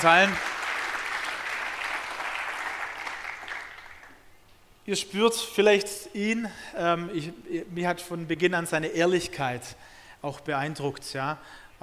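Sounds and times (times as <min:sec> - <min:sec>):
speech: 0:00.0 - 0:00.5, 0:04.9 - 0:11.8
audience applause: 0:00.0 - 0:04.2.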